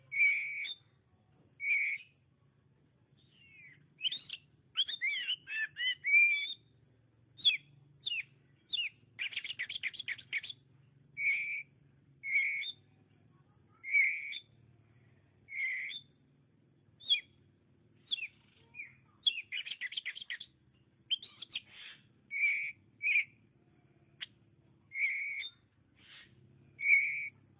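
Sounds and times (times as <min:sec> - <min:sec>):
Oriental magpie-robin song: 0:00.0 - 0:01.0, 0:01.6 - 0:02.2, 0:03.2 - 0:06.8, 0:07.4 - 0:10.6, 0:11.2 - 0:12.9, 0:13.8 - 0:14.6, 0:15.5 - 0:16.2, 0:17.0 - 0:17.4, 0:18.0 - 0:20.5, 0:21.1 - 0:23.4, 0:24.2 - 0:27.4.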